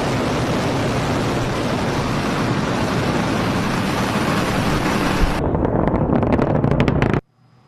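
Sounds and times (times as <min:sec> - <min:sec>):
SpaceX rocket roar at ignition and liftoff: 0:00.0 - 0:07.2.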